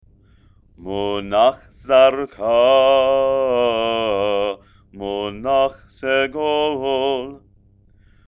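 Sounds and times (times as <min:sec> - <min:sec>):
person chanting haftarah with trope: 0:00.8 - 0:07.4.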